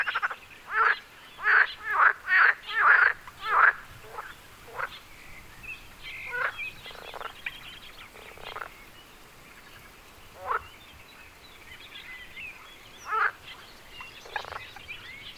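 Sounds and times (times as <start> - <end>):
frog calls at Wyspa Sobieszewska in Gdańsk, Poland: 0.0 - 5.2, 6.0 - 8.9, 9.5 - 10.8, 12.5 - 15.3.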